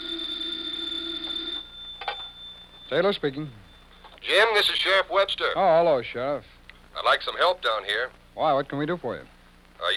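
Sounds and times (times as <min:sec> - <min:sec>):
telephone ringing: 0:00.0 - 0:05.0
speech: 0:02.9 - 0:09.9.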